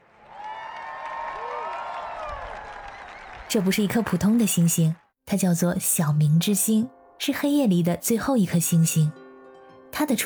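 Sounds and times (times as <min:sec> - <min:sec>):
crowd cheering and applauding: 0:00.0 - 0:04.6
speech: 0:03.5 - 0:09.2, 0:10.0 - 0:10.2.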